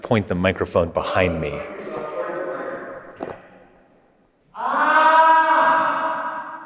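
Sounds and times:
speech: 0.0s - 2.0s
human scream echoing in reverberant metal-paneled room: 4.5s - 6.6s.

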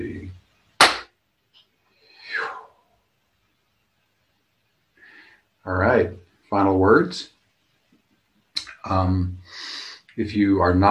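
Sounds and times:
hand clap: 0.8s - 1.1s
speech: 5.6s - 7.4s, 8.8s - 10.9s.

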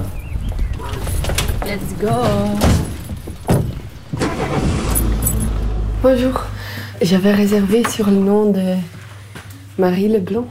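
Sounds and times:
car engine rumble driving off: 0.7s - 8.4s
speech: 1.7s - 2.8s, 6.0s - 9.0s, 9.8s - 10.4s
sharp thuds: 2.2s - 8.1s.

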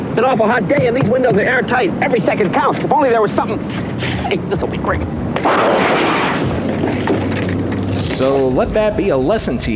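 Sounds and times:
speech: 0.2s - 6.1s, 8.2s - 9.7s
sledgehammer smashing a car: 5.4s - 7.4s.

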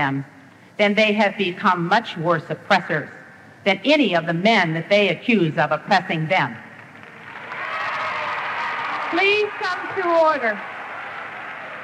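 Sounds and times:
speech: 0.0s - 6.6s, 9.1s - 10.7s
crowd clapping: 6.8s - 11.8s.

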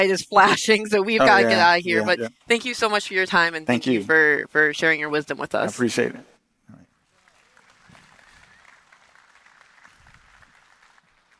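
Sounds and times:
speech: 0.0s - 6.3s
audience applause: 7.0s - 11.3s.

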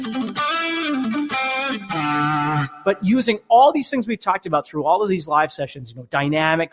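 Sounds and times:
distorted electric guitar playing hammer-ons and pull-offs: 0.0s - 3.0s
speech: 2.8s - 6.7s.

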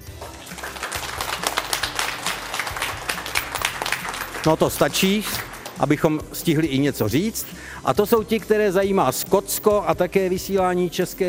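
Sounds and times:
crowd applauding: 0.0s - 6.7s
speech: 4.4s - 11.2s.

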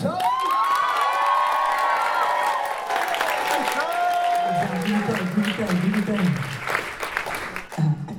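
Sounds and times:
crowd cheering and whooping: 0.0s - 5.7s
audience clapping welcoming a speaker onto the stage: 0.0s - 7.9s.

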